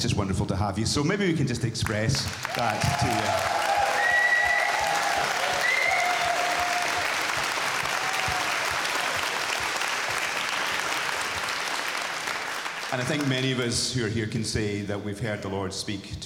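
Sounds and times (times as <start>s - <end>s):
speech: 0.1s - 3.6s, 12.9s - 16.2s
audience applause: 2.3s - 13.7s
faint whistles and cheers: 2.5s - 9.6s.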